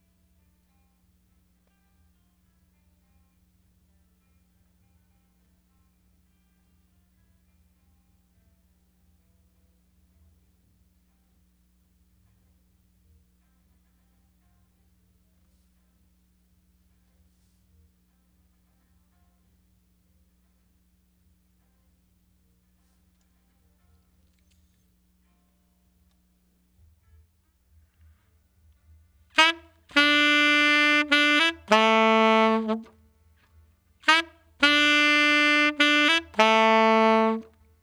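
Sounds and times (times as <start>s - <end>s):
saxophone: 29.4s - 32.9s, 34.0s - 37.5s.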